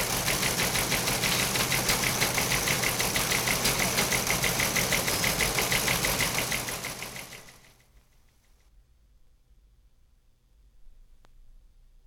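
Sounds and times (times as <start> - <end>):
teletype machines clattering: 0.0 - 7.8.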